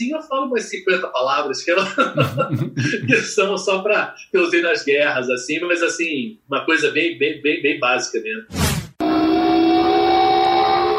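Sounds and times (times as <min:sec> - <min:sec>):
speech: 0:00.0 - 0:08.8
laughter: 0:01.8 - 0:03.3
air raid sirens warning of missile attack: 0:09.0 - 0:10.9.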